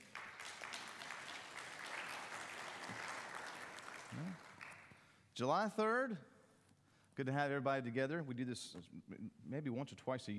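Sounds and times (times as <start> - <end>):
audience applause for worship music: 0.0 - 4.9
speech: 4.1 - 4.4, 5.4 - 6.3, 7.2 - 10.3.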